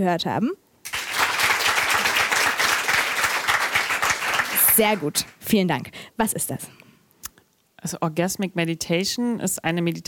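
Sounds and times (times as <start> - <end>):
speech: 0.0 - 0.6, 4.8 - 6.8, 7.8 - 10.0
audience clapping: 0.8 - 5.4.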